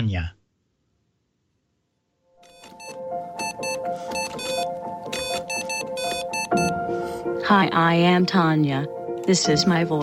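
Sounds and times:
speech: 0:00.0 - 0:00.4, 0:07.5 - 0:10.0
Morse code beeps: 0:02.4 - 0:06.8.

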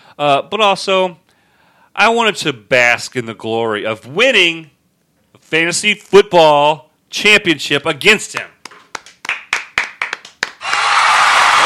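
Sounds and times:
speech: 0:00.2 - 0:01.2, 0:02.0 - 0:04.8, 0:05.4 - 0:08.6
hand clapping: 0:08.3 - 0:11.6.

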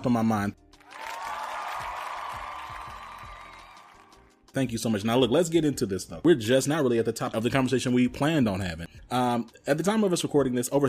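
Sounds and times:
speech: 0:00.0 - 0:00.6, 0:04.5 - 0:10.8
applause sound effect: 0:00.8 - 0:04.4.

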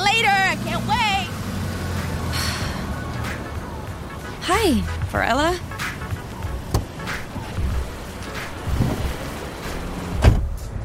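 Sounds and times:
car engine rumbling: 0:00.0 - 0:10.8
speech: 0:04.6 - 0:05.7
door or latch clunks: 0:10.2 - 0:10.5.

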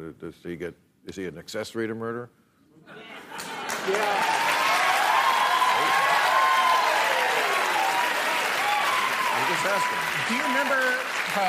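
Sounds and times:
speech: 0:00.1 - 0:04.5, 0:09.4 - 0:11.4
audience applause: 0:03.4 - 0:11.4.

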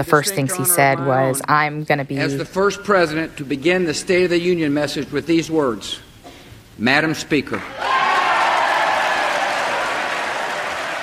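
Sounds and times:
speech: 0:00.0 - 0:06.1, 0:06.8 - 0:08.0
lawmakers applauding in a chamber: 0:07.6 - 0:11.0.

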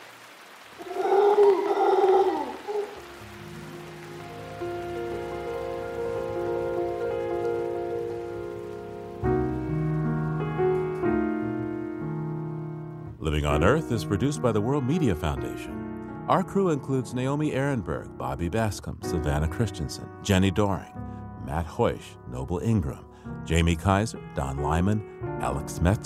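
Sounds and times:
noisy primates calling in Costa Rica: 0:00.8 - 0:03.2
sustained musical chords: 0:03.0 - 0:15.1
speech: 0:13.6 - 0:26.0.

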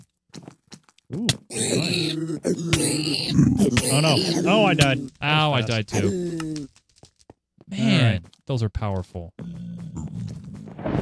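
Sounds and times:
Minecraft zombie groaning in a video game: 0:01.1 - 0:06.7
speech: 0:01.1 - 0:06.7, 0:07.7 - 0:09.7.

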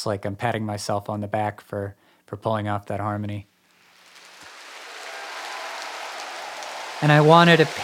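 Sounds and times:
speech: 0:00.0 - 0:03.5, 0:07.0 - 0:07.8
raucous celebratory applause sample: 0:03.8 - 0:07.8.

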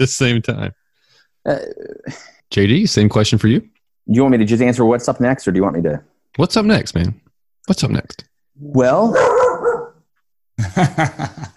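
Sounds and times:
speech: 0:00.0 - 0:00.8, 0:01.4 - 0:09.4, 0:10.6 - 0:11.5
female dog barking at passers-by near her house: 0:09.1 - 0:10.1
laughter: 0:10.6 - 0:11.5.

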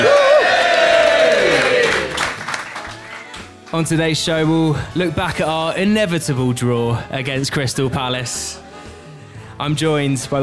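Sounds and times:
live audience cheering and whooping at the Half Moon pub, Putney: 0:00.0 - 0:02.3
scattered claps: 0:00.0 - 0:03.9
speech: 0:03.8 - 0:08.6, 0:09.6 - 0:10.4.

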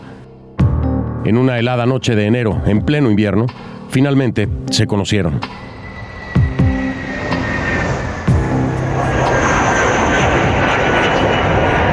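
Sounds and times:
speech: 0:01.2 - 0:05.7
aircraft engine roar from a plane landing at MacArthur airport on Long Island, New York: 0:05.0 - 0:11.9
low thumps: 0:05.4 - 0:10.9.

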